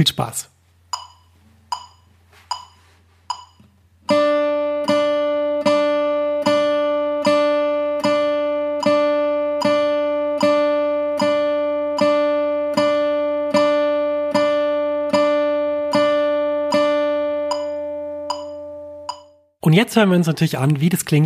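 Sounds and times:
speech: 0.0 - 0.5, 19.8 - 21.2
click count-in: 0.9 - 3.6
electric guitar chords played on the beat: 4.0 - 19.2.

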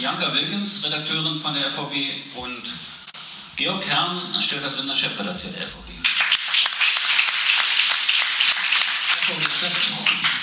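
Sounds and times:
speech: 0.0 - 2.9, 3.6 - 6.1, 9.3 - 10.1
audience applause: 6.0 - 10.4.

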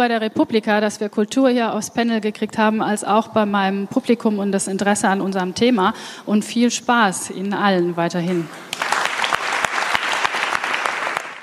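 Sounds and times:
speech: 0.0 - 8.8
audience applause: 8.7 - 11.4.

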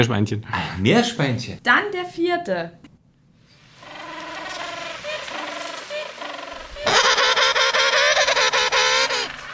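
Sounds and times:
speech: 0.0 - 2.9
penguin call: 3.8 - 9.5.

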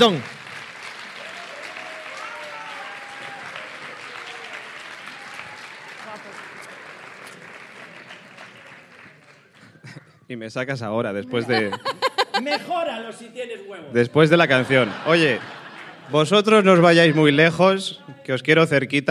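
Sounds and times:
speech: 0.0 - 0.3, 10.3 - 19.0
audience applause: 0.0 - 10.0, 14.5 - 16.3
faint whistles and cheers: 1.1 - 6.3
laughter: 11.2 - 13.0, 14.3 - 17.5.

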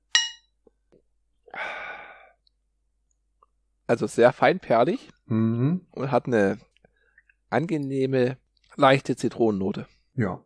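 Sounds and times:
two glasses clinking in a toast: 0.2 - 0.5
breathy hissing exhale: 1.5 - 2.4
speech: 3.9 - 6.7, 7.5 - 10.4.

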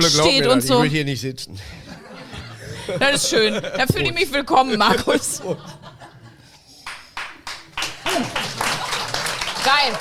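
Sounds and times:
speech: 0.0 - 1.9, 2.9 - 5.8, 9.8 - 9.9
laughter: 1.6 - 6.6, 8.0 - 9.6
applause: 6.8 - 9.9.

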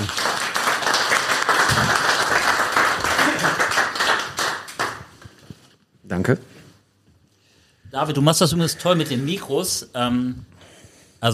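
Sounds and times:
audience applause: 0.0 - 5.2
speech: 6.2 - 6.5, 8.0 - 10.6.

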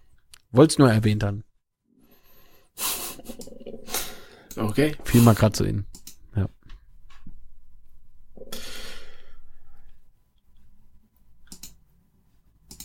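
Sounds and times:
speech: 0.5 - 1.5, 4.6 - 6.6
computer mouse clicking: 5.9 - 6.2, 11.4 - 11.8, 12.6 - 12.8.

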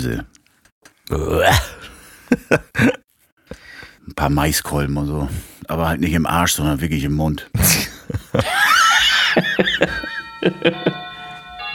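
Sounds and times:
speech: 0.0 - 0.4, 1.1 - 1.8, 2.4 - 3.0, 4.1 - 8.8, 9.6 - 10.9
laughter: 2.3 - 3.0, 7.6 - 11.2
doorbell ringing: 8.9 - 11.7.

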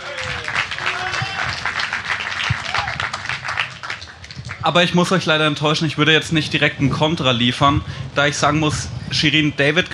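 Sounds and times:
audience applause: 0.0 - 4.6
speech: 4.6 - 9.9.

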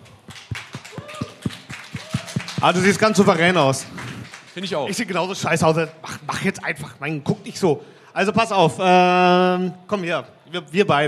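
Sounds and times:
small group hand clapping: 0.0 - 5.2
speech: 2.6 - 4.0, 4.6 - 11.0.

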